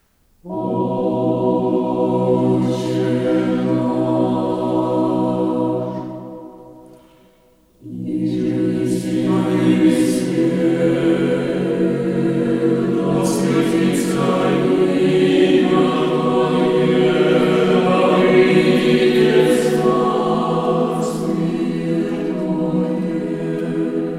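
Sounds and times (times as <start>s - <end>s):
chamber choir singing a prayer: 0.4s - 24.1s.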